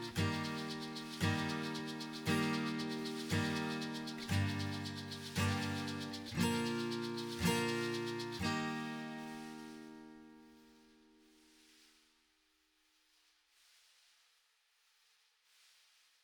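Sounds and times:
acoustic percussion: 0.0 - 10.8.

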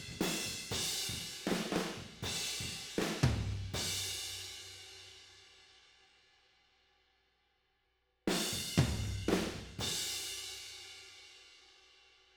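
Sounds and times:
tom drums with overheads and room: 0.0 - 4.1, 8.3 - 10.1.

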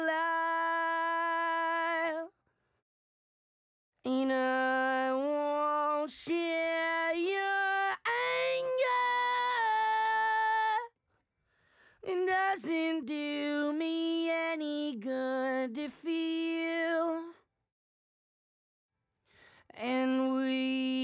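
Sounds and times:
main vocals: 0.0 - 2.3, 4.1 - 10.9, 12.0 - 17.3, 19.8 - 21.0.

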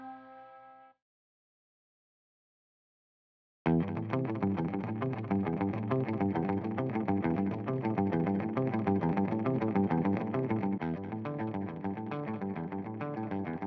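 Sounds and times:
bass guitar: 3.7 - 13.6.

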